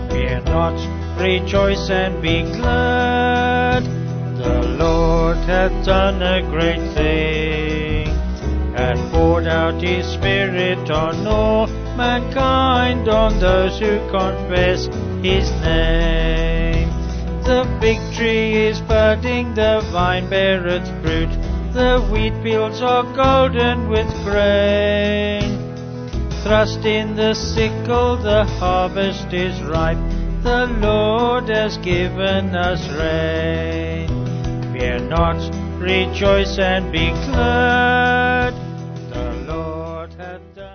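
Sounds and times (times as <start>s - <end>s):
band with vocals: 0.1s - 40.7s.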